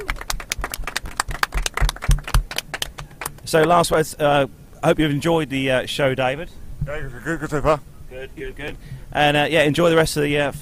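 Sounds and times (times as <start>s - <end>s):
audience applause: 0.0s - 3.4s
speech: 3.5s - 10.6s.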